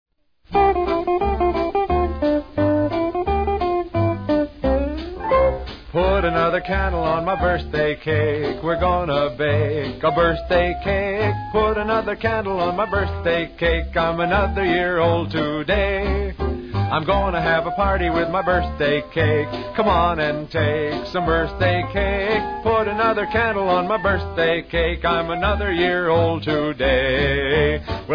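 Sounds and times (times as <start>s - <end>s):
birthday polka: 0.5s - 28.1s.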